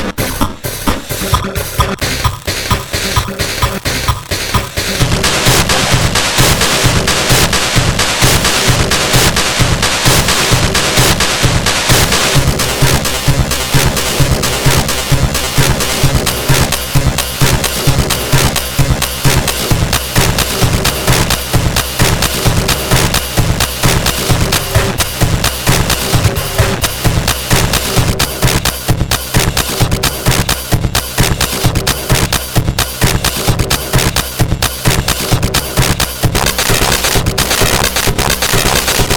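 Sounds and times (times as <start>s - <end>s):
drum machine demo drum beat: 0.0s - 39.1s.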